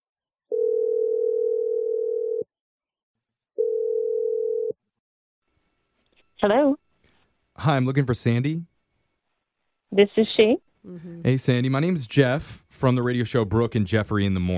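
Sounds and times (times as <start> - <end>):
phone ringing tones: 0.5 - 2.5, 3.6 - 4.7
speech: 6.5 - 6.8, 7.6 - 8.7, 9.9 - 14.5.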